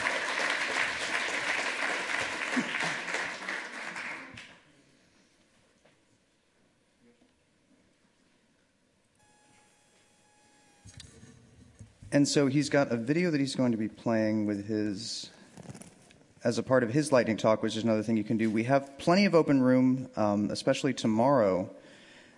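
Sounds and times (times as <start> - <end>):
audience applause: 0.0 - 4.6
faint tones: 9.1 - 12.7
speech: 12.1 - 15.4, 16.4 - 21.8.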